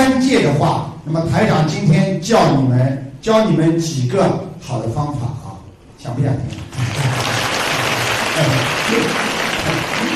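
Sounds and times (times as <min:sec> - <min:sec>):
speech: 0:00.3 - 0:05.4, 0:06.0 - 0:07.2, 0:08.4 - 0:10.1
audience clapping: 0:06.6 - 0:10.1.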